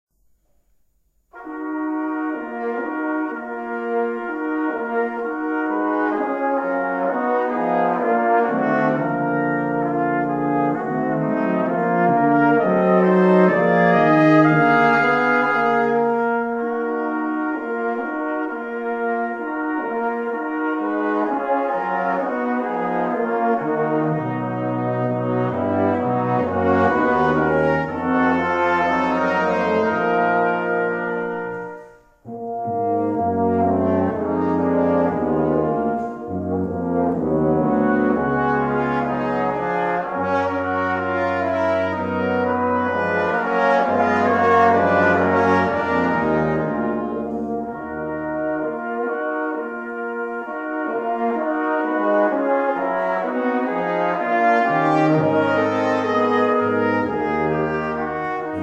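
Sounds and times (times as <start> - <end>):
quintet playing variations: 0.4 - 58.6.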